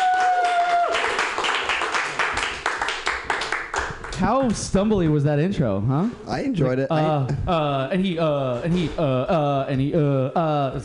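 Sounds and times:
crowd applauding: 0:00.0 - 0:04.2
speech: 0:04.2 - 0:10.8.

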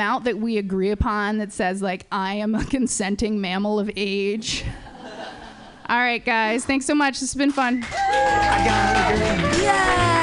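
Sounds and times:
speech: 0:00.0 - 0:04.9, 0:05.9 - 0:10.2
audience clapping and cheering: 0:07.4 - 0:10.2.

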